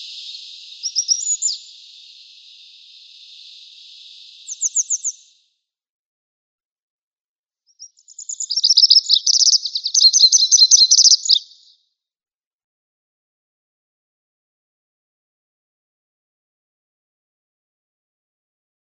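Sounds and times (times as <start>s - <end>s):
Grey Wagtail singing: 0.0s - 5.4s, 7.8s - 11.7s.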